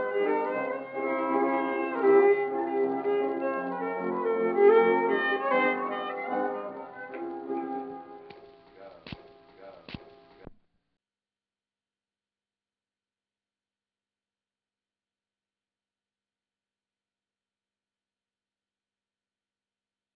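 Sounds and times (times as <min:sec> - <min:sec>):
music: 0:00.0 - 0:10.7.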